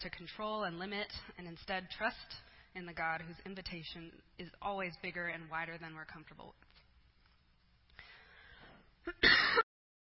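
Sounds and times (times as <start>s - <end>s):
speech: 0.0s - 6.6s, 9.0s - 9.6s
person coughing: 9.1s - 9.7s.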